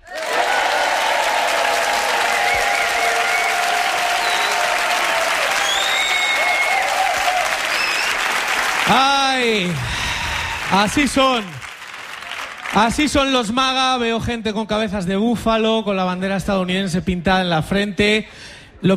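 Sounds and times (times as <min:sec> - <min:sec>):
live audience at a comedy talk show clapping: 0:00.0 - 0:13.4
speech: 0:10.7 - 0:11.6, 0:12.7 - 0:18.9.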